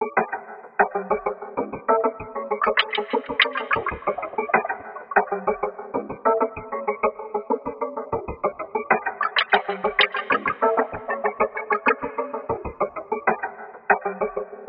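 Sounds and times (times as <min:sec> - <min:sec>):
meta groove: 0:00.0 - 0:14.6.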